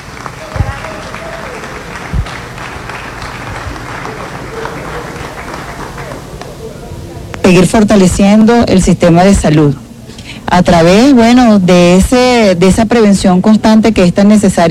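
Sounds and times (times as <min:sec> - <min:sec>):
applause: 0:00.0 - 0:06.6
speech: 0:07.5 - 0:09.8, 0:10.5 - 0:14.6.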